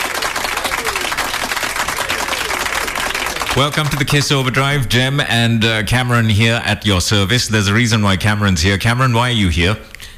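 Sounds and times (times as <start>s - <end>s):
fake applause sound effect: 0.0s - 4.4s
speech: 3.6s - 9.9s.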